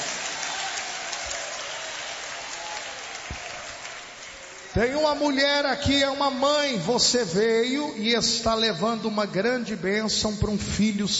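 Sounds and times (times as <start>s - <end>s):
audience applauding: 0.0s - 5.1s
speech: 4.8s - 11.1s.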